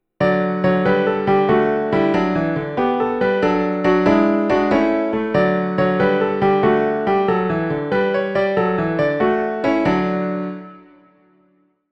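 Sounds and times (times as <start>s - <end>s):
piano piece: 0.2s - 11.5s.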